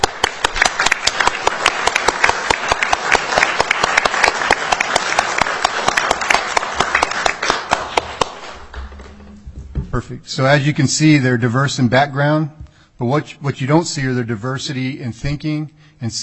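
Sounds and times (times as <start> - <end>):
audience applause: 0.0 - 9.2
speech: 10.1 - 16.2.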